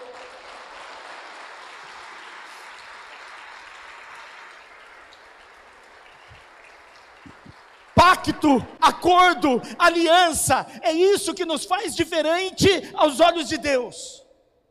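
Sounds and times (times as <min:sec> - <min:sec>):
audience applause: 0:00.0 - 0:08.7
speech: 0:08.0 - 0:14.2.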